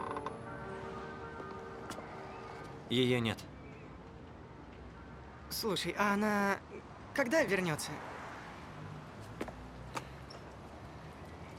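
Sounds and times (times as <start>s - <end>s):
house door in Dublin creaking open: 0.0s - 0.6s
speech: 2.9s - 3.5s, 5.5s - 8.1s.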